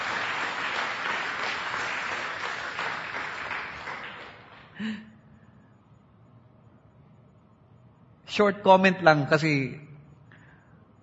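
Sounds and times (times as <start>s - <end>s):
church congregation clapping: 0.0s - 5.0s
speech: 4.8s - 5.1s, 8.4s - 9.9s.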